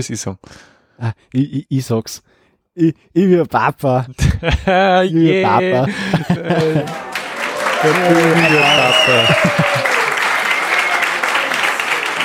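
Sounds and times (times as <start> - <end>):
speech: 0.0 - 7.0, 7.8 - 9.9
laughter: 4.2 - 12.2
applause: 6.1 - 12.2.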